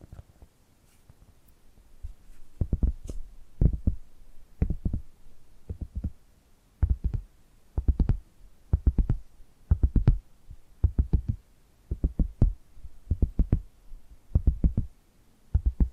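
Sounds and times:
faint hiss: 0:00.0 - 0:15.9
dull thumping taps: 0:02.0 - 0:04.0, 0:04.6 - 0:05.1, 0:06.8 - 0:07.2, 0:07.8 - 0:10.2, 0:10.8 - 0:13.7, 0:14.4 - 0:14.9, 0:15.6 - 0:15.9.

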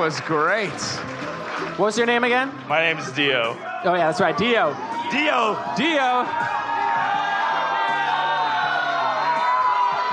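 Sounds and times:
speech: 0:00.0 - 0:06.6
live audience cheering: 0:03.6 - 0:10.1.

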